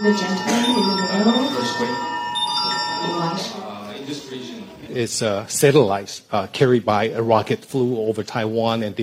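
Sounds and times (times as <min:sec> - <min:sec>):
speech: 0:00.0 - 0:02.2, 0:03.0 - 0:09.0
emergency missile alert on mobile phones at Taiwan's foreign ministry: 0:00.0 - 0:04.0.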